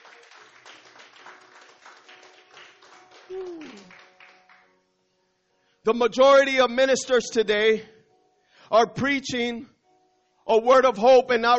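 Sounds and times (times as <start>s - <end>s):
audience applause: 0.0s - 4.7s
speech: 3.3s - 4.0s, 5.8s - 7.9s, 8.7s - 9.7s, 10.5s - 11.5s.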